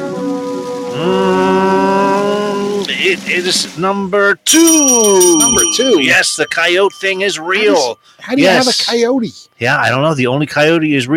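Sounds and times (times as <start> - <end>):
voice imitating a drum roll: 0.0 - 5.3
speech: 3.0 - 11.1.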